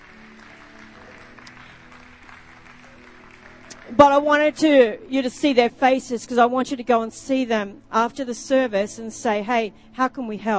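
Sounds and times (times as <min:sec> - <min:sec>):
audience clapping: 0:00.0 - 0:04.8
speech: 0:03.9 - 0:10.5.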